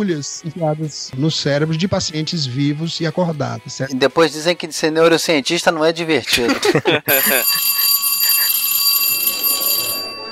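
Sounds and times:
speech: 0.0s - 7.7s
laughter: 6.3s - 8.7s
telephone ringing in a call to a mental health institute: 7.1s - 10.2s.

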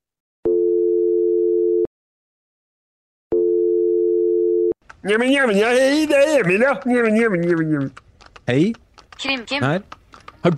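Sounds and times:
telephone ringing tone: 0.5s - 1.9s, 3.3s - 4.8s
speech: 5.0s - 10.5s.

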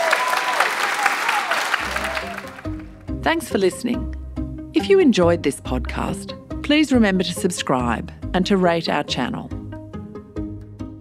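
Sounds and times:
audience applause: 0.0s - 3.0s
music: 1.7s - 10.9s
speech: 3.2s - 4.2s, 4.8s - 9.6s.

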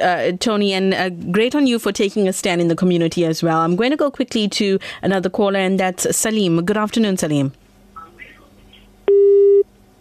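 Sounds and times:
speech: 0.0s - 7.6s
telephone busy tone after a radio phone-in caller's line drops: 9.1s - 9.7s.

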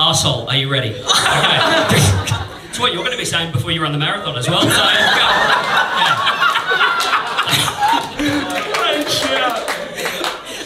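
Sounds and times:
speech: 0.1s - 6.4s
audience laughing: 1.0s - 3.0s, 4.6s - 10.6s
audience clapping: 5.5s - 10.6s.

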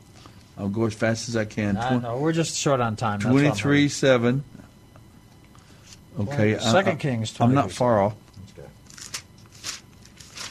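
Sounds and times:
speech: 0.6s - 4.6s, 6.2s - 8.2s
book pages turning: 8.9s - 10.4s.

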